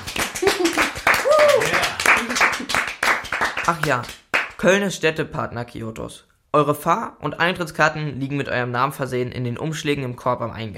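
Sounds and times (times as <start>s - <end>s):
scattered hand claps from a few people: 0.0s - 4.6s
speech: 3.7s - 10.7s.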